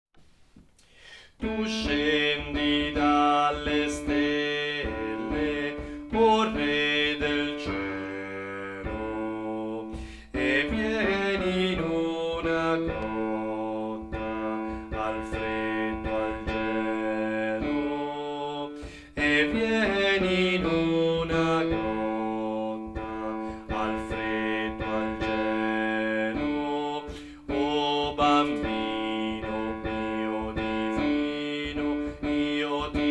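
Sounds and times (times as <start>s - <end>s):
bass section of a choir singing: 1.5s - 33.0s.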